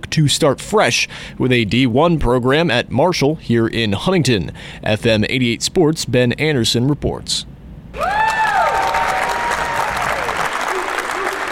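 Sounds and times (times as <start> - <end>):
speech: 0.2 - 8.1
basketball fans clapping and cheering for a new Marshall women's basketball head coach: 8.0 - 11.5.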